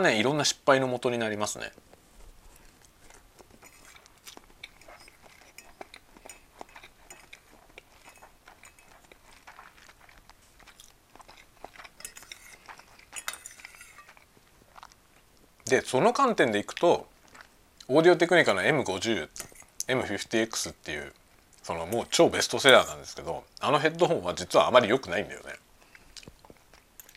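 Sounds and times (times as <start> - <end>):
speech: 0.0 - 1.9, 15.7 - 17.1, 17.9 - 25.6
soft chewing and slurping: 1.7 - 15.8, 16.4 - 17.9, 18.5 - 23.7, 25.5 - 27.1
cutlery clinking on a plate while eating spaghetti: 3.5 - 9.2, 11.7 - 14.2.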